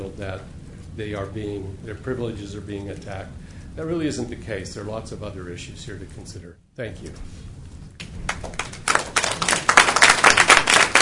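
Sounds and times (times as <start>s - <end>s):
speech: 0.1s - 7.6s
audience clapping after a public comment: 8.0s - 11.0s.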